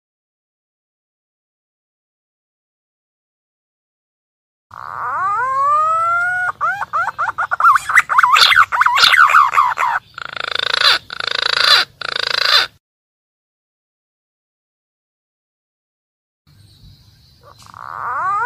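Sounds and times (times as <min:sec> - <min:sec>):
green pigeon calling, used as a lure for wild birds: 0:04.7 - 0:12.8, 0:17.2 - 0:18.4.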